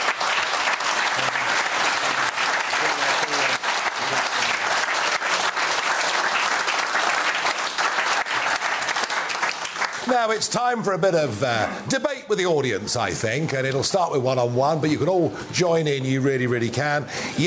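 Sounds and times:
audience applause for two studio guests: 0:00.0 - 0:10.5
speech: 0:10.2 - 0:17.4.

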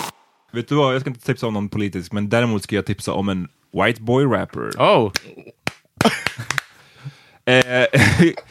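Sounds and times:
speech: 0:00.5 - 0:05.5, 0:07.5 - 0:08.4
out-of-time hand clapping: 0:05.1 - 0:06.7
laughter: 0:06.0 - 0:06.7, 0:07.9 - 0:08.4.

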